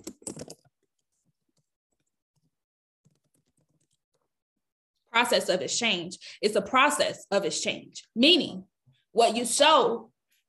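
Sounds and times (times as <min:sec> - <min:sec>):
computer keyboard typing: 0:00.0 - 0:00.7, 0:01.6 - 0:04.1
speech: 0:05.2 - 0:10.1.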